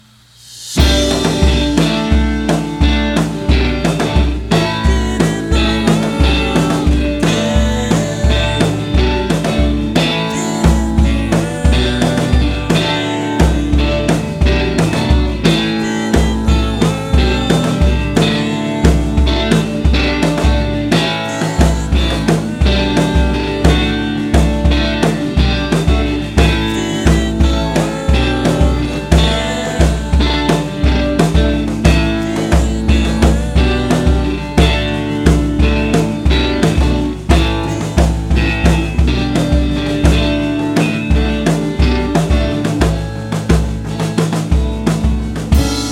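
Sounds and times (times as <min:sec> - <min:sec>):
drums: 0:00.0 - 0:45.8.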